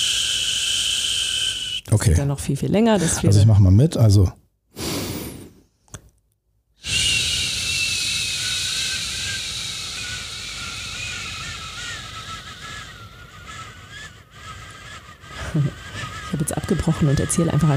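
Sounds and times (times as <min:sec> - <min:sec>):
long slow hissing exhale in a breathing exercise: 0:00.0 - 0:01.8, 0:04.8 - 0:05.6, 0:06.8 - 0:16.4
speech: 0:01.9 - 0:04.4, 0:17.0 - 0:17.7.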